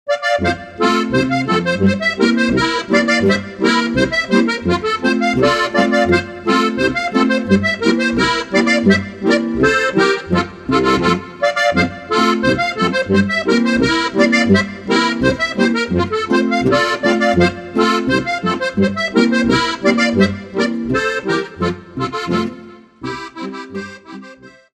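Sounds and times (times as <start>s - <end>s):
Bavarian boarischer folk dance music: 0.1s - 24.7s.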